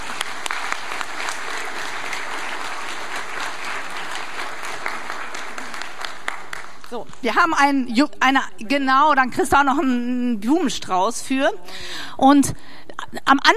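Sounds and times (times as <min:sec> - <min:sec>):
audience applause: 0:00.0 - 0:07.2
speech: 0:07.0 - 0:13.5.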